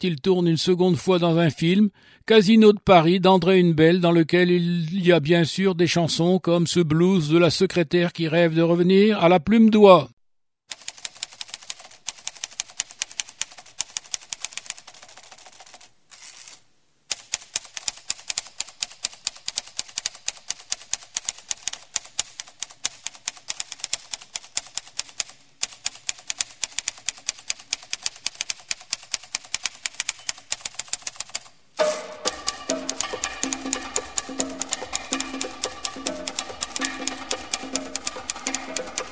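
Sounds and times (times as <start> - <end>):
speech: 0.0 - 10.8
typewriter typing: 10.7 - 39.1.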